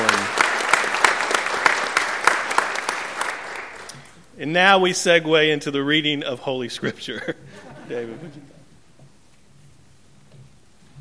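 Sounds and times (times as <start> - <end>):
audience applause: 0.0 - 4.0
speech: 4.4 - 8.5
laughter: 6.8 - 8.7.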